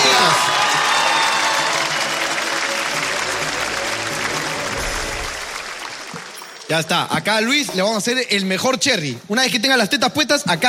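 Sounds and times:
audience applause: 0.0s - 6.9s
speech: 6.7s - 10.6s.

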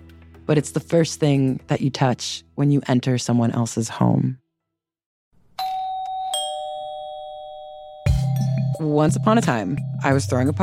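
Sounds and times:
speech: 0.5s - 4.4s, 8.8s - 10.6s
doorbell chiming: 5.6s - 10.4s.

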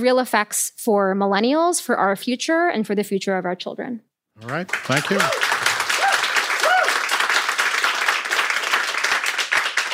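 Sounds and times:
speech: 0.0s - 5.5s
audience applause: 4.4s - 9.9s.

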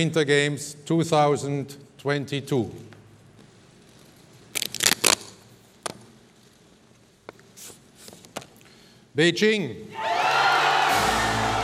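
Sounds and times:
speech: 0.0s - 2.9s, 9.2s - 10.2s
crowd cheering wildly: 10.0s - 11.6s.

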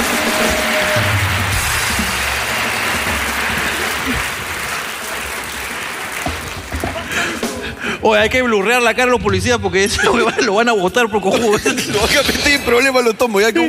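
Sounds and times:
audience applause: 0.0s - 7.8s
laughter: 3.6s - 4.7s, 6.7s - 8.0s, 9.8s - 13.6s
speech: 8.0s - 13.6s.

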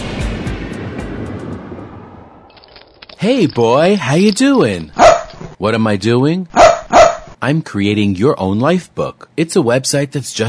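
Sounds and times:
airplane taking off: 0.0s - 2.5s
speech: 3.2s - 5.0s, 5.6s - 6.6s, 7.4s - 10.4s.

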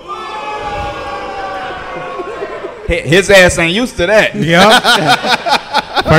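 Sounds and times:
audience booing: 0.0s - 3.2s
laughter: 1.6s - 3.2s, 4.2s - 6.1s
speech: 2.9s - 6.1s.

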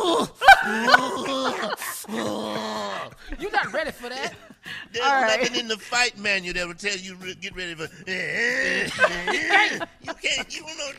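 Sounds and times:
voice imitating a growl: 0.0s - 3.2s, 8.1s - 9.8s
laughter: 0.2s - 10.9s
speech: 3.6s - 10.9s.

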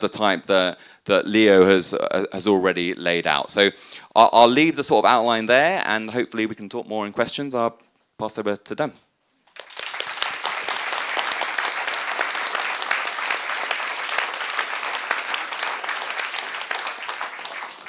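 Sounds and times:
speech: 0.0s - 9.0s
audience applause: 9.6s - 17.8s.

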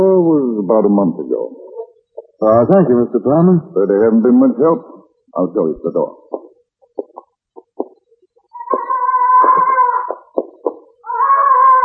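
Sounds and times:
speech: 0.7s - 1.6s, 2.4s - 6.4s
parrot squawking: 8.5s - 11.8s.

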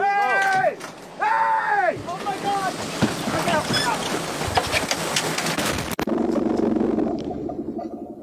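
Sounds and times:
people shouting and screaming: 0.0s - 2.8s
boat engine: 0.0s - 8.2s
churning water: 0.0s - 8.2s.

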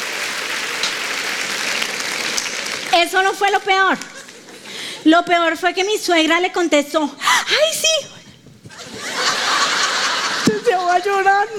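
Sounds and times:
audience applause: 0.0s - 4.5s, 8.7s - 10.6s
speech: 3.0s - 4.2s, 5.0s - 8.2s, 10.9s - 11.5s
laughter: 8.7s - 11.5s.

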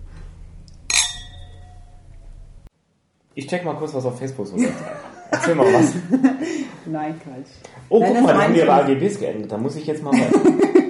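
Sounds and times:
low hum: 0.0s - 10.8s
glasses clinking in a toast: 0.9s - 2.0s
speech: 3.4s - 10.8s
laughter: 4.6s - 6.8s, 10.1s - 10.8s.

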